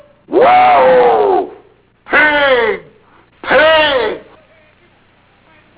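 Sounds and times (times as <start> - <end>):
person calling pigs: 0.4 - 4.4.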